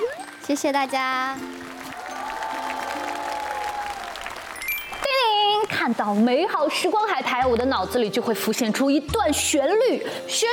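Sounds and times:
audience applause: 0.1 - 5.8
speech: 0.5 - 1.6, 5.8 - 10.5.

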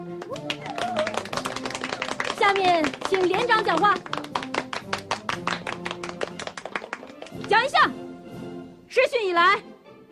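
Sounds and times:
group applauding: 0.0 - 7.7
speech: 2.5 - 4.4, 7.5 - 8.0, 9.0 - 9.7.

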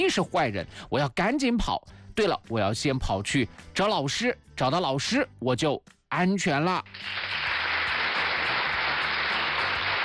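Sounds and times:
speech: 0.0 - 7.6
applause: 6.9 - 10.0.

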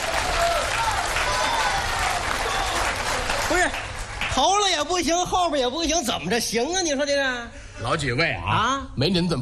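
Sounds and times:
audience applause: 0.0 - 5.0
speech: 4.4 - 9.4.

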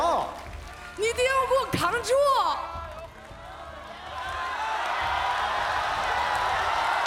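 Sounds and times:
speech: 1.8 - 2.8
studio audience at a singing competition cheering: 2.7 - 7.0.

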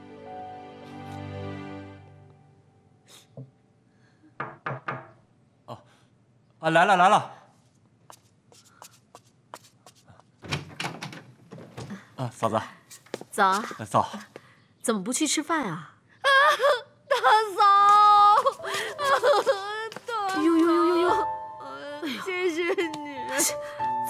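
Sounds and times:
speech: 6.6 - 7.4, 12.4 - 12.8, 13.4 - 15.9
young woman sobbing: 16.2 - 23.9.

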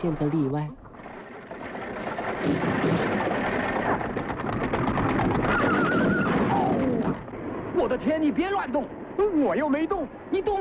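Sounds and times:
speech: 0.0 - 0.8, 2.4 - 3.3, 7.8 - 10.5
horse-drawn carriage galloping across open wasteland: 0.0 - 8.6
horse neighing: 5.4 - 7.2.

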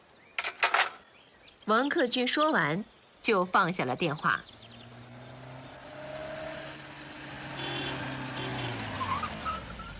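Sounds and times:
speech: 1.7 - 4.5
car engine humming outside the door: 4.4 - 9.9.

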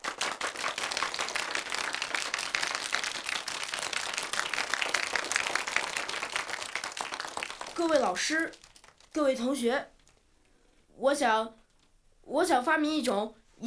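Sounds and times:
classroom applause: 0.0 - 10.1
speech: 7.8 - 8.6, 9.2 - 9.9, 11.0 - 11.6, 12.3 - 13.6.

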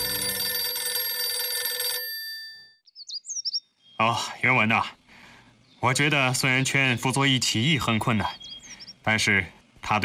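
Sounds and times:
telephone bell ringing: 0.0 - 2.8
speech: 4.0 - 5.0, 5.8 - 8.4, 9.0 - 10.0.

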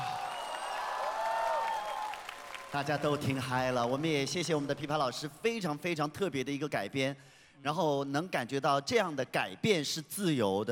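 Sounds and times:
audience applause and cheering for a singer after her song: 0.0 - 4.9
speech: 2.7 - 10.7.

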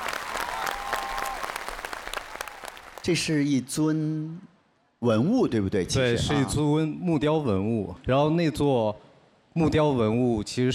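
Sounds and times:
audience applause: 0.0 - 3.2
speech: 3.0 - 9.0, 9.6 - 10.7.

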